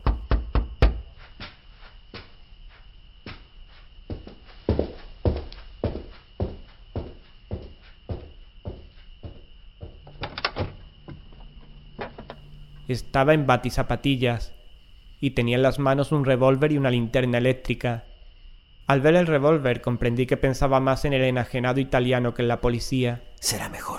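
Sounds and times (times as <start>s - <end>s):
knocking on a door: 0.0s - 1.1s, 4.1s - 10.2s
speech: 12.9s - 14.6s, 15.2s - 18.1s, 18.9s - 23.9s.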